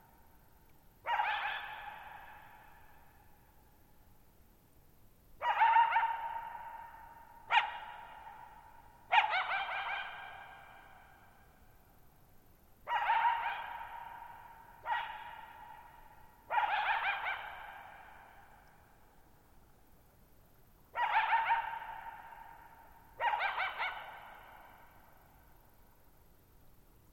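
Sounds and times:
coyote barking: 1.0 - 2.6, 5.4 - 11.1, 12.9 - 18.6, 21.0 - 24.9.

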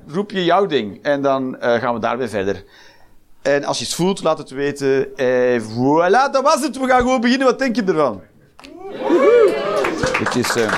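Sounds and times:
speech: 0.1 - 9.1, 10.2 - 10.7
voices cheering and whooping: 8.7 - 10.3
audience applause: 8.9 - 10.7.

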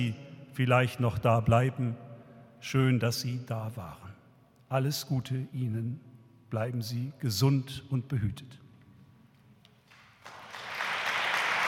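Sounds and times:
speech: 0.0 - 2.0, 2.6 - 4.0, 4.7 - 8.6
crowd applause: 10.2 - 11.6.

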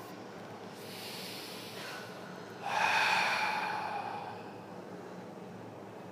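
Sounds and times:
deep breath exhaled through the mouth during a guided meditation class: 0.8 - 4.6.

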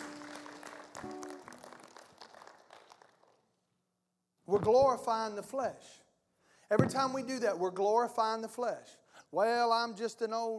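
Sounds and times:
thank-you clapping: 0.0 - 3.6
speech: 4.5 - 6.0, 6.7 - 10.5.

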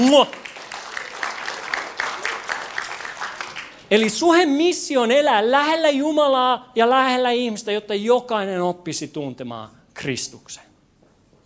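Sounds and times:
speech: 0.0 - 0.5, 3.9 - 10.7
audience applause: 0.0 - 3.9.

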